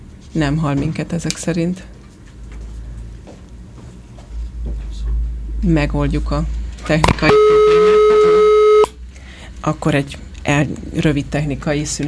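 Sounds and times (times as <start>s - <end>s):
speech: 0.4s - 2.0s, 5.6s - 7.3s, 9.6s - 12.0s
two-pitched telephone redialing tone: 7.0s - 9.0s.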